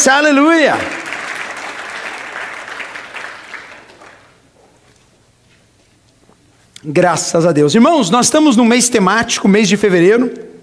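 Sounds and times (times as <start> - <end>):
speech: 0.0 - 1.0, 6.8 - 10.5
crowd applause: 0.0 - 4.4.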